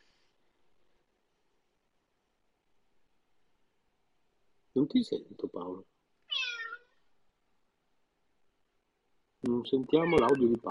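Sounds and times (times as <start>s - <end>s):
speech: 4.8s - 6.0s, 9.6s - 10.7s
cat meowing: 6.3s - 7.0s, 9.9s - 10.5s.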